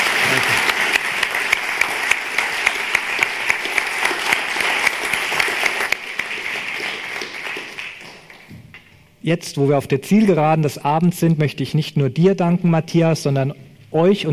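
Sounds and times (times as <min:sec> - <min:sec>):
audience applause: 0:00.0 - 0:08.5
speech: 0:09.3 - 0:14.3.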